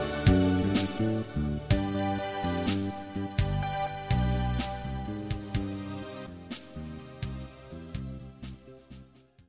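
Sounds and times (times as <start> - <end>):
melody: 0.0 - 6.3.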